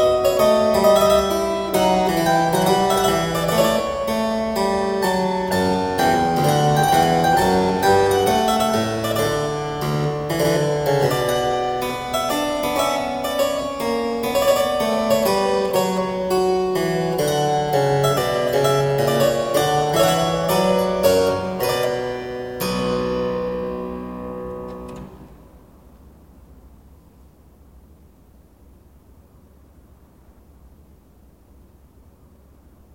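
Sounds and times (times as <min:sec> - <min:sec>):
keyboard music minuet: 0:00.0 - 0:25.2.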